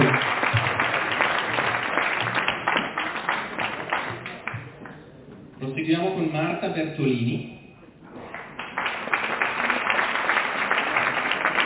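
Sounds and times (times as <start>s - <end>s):
crowd applauding: 0.0s - 4.9s, 8.2s - 11.6s
speech: 5.9s - 7.6s.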